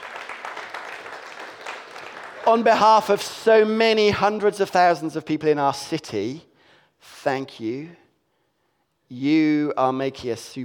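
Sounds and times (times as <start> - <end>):
crowd applause: 0.0 - 2.9
speech: 2.5 - 8.0, 9.1 - 10.6.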